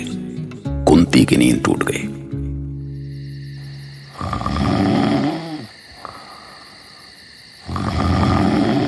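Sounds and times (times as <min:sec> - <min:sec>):
steady high insect-like hum: 0:00.0 - 0:08.8
speech: 0:01.0 - 0:02.2
loud snoring: 0:04.1 - 0:06.6, 0:07.6 - 0:08.8.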